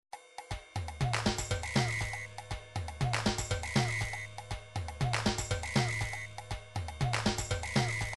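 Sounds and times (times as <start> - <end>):
drum pattern: 0.5 - 8.1.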